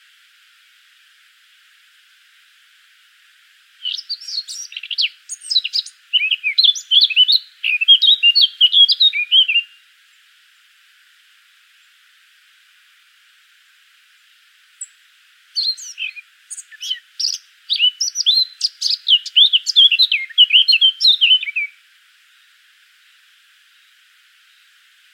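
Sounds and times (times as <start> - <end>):
Eurasian blackcap song: 3.8 - 9.8, 14.8 - 21.8.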